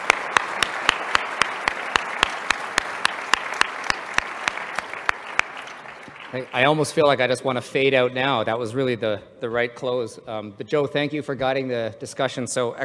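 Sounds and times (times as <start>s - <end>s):
audience applause: 0.0s - 7.0s
speech: 6.3s - 12.8s.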